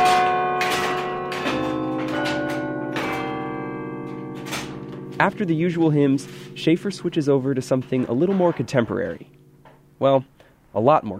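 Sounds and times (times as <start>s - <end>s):
church bells ringing: 0.0s - 10.0s
speech: 5.2s - 9.4s, 10.0s - 11.1s.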